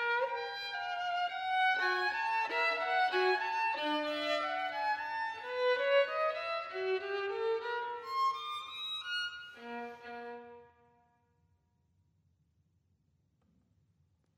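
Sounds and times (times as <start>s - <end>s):
solo violin sonata: 0.0s - 10.9s.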